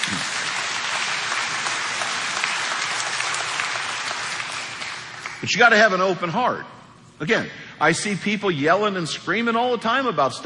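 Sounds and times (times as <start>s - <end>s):
audience applause: 0.0s - 5.4s
speech: 5.4s - 10.4s.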